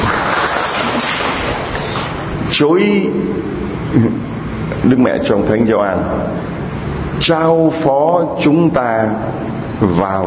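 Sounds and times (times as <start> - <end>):
audience applause: 0.0 - 2.1
speech: 2.6 - 6.6, 7.2 - 10.2.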